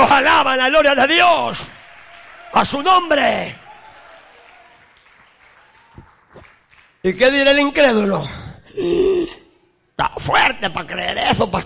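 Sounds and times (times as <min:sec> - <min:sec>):
speech: 0:00.2 - 0:01.8, 0:02.5 - 0:03.6, 0:07.0 - 0:09.4, 0:10.0 - 0:11.6
audience clapping: 0:00.7 - 0:07.3.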